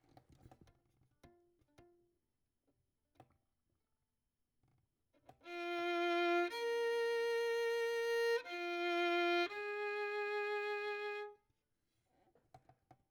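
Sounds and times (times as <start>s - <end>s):
violin: 5.4s - 11.4s.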